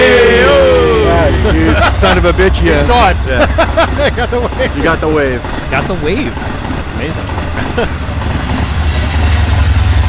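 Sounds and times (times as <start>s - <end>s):
laughter: 0.0s - 5.8s, 7.4s - 8.2s
train passing by: 0.0s - 10.0s
speech: 2.0s - 8.1s.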